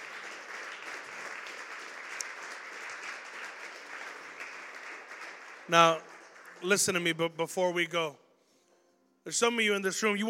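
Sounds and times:
audience hand clapping: 0:00.0 - 0:07.3
speech: 0:05.7 - 0:08.2, 0:09.2 - 0:10.2.

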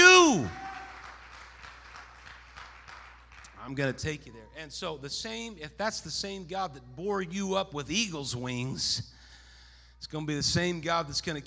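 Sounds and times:
audience clapping hands: 0:00.0 - 0:03.8
speech: 0:03.7 - 0:09.2, 0:10.0 - 0:11.4.

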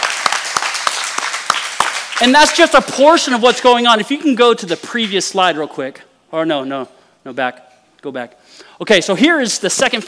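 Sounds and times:
crowd clapping: 0:00.0 - 0:03.0
speech: 0:02.2 - 0:10.0.

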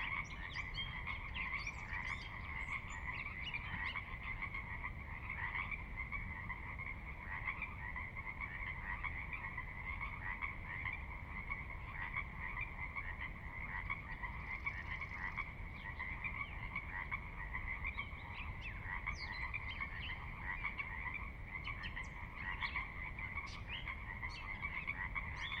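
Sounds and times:
Pacific Chorus Frog chorus croaking: 0:00.0 - 0:25.5.

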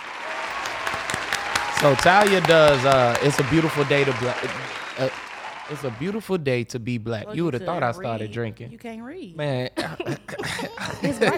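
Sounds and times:
audience applause: 0:00.0 - 0:06.4
laughter: 0:00.5 - 0:06.6, 0:09.7 - 0:11.3
speech: 0:01.8 - 0:11.3.

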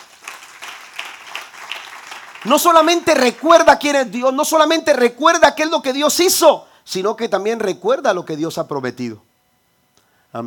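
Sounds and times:
audience applause: 0:00.0 - 0:03.6
speech: 0:02.4 - 0:09.3.

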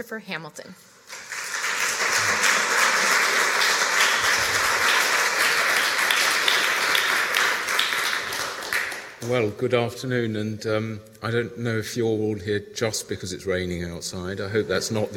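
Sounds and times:
speech: 0:00.0 - 0:01.0, 0:09.2 - 0:15.1
audience applause: 0:01.0 - 0:09.4.

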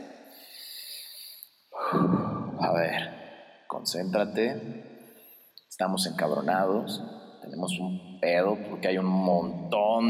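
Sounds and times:
deep breath: 0:00.2 - 0:02.6
speech: 0:02.7 - 0:03.2, 0:03.8 - 0:04.9, 0:05.7 - 0:10.0.

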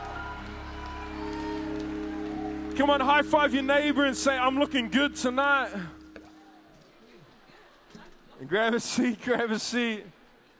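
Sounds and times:
audience clapping and applauding: 0:00.0 - 0:06.4
speech: 0:02.8 - 0:06.0, 0:08.4 - 0:10.2.

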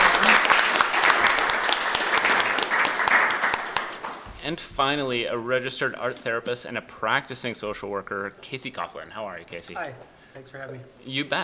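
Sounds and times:
audience applause: 0:00.0 - 0:04.3
speech: 0:04.5 - 0:11.4.

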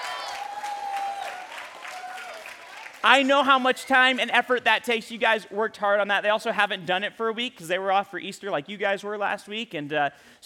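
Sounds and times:
audience applause: 0:00.0 - 0:04.3
speech: 0:03.0 - 0:10.4.

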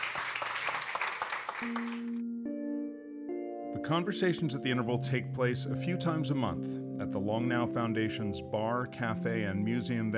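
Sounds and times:
crowd applauding: 0:00.0 - 0:02.2
speech: 0:01.6 - 0:02.4, 0:03.9 - 0:10.1
sustained musical tones: 0:01.6 - 0:10.1.

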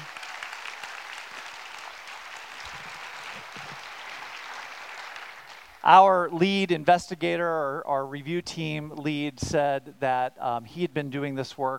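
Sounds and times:
audience applause: 0:00.0 - 0:05.8
speech: 0:05.8 - 0:11.7.

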